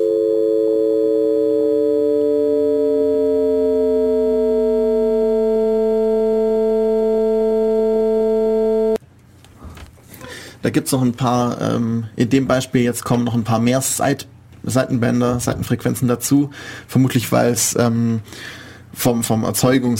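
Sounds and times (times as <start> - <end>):
interrupted tone rising into continuous tone: 0.0 - 9.0
speech: 10.6 - 19.9.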